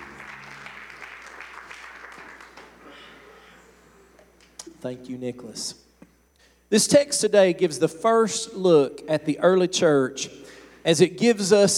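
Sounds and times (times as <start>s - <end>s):
audience clapping hands in praise: 0.0s - 3.4s
speech: 4.8s - 5.8s, 6.7s - 11.7s.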